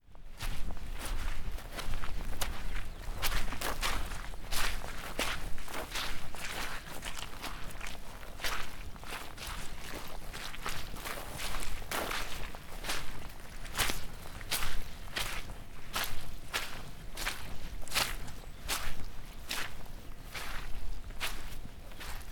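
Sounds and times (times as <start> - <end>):
footsteps in mud: 0.3 - 22.3.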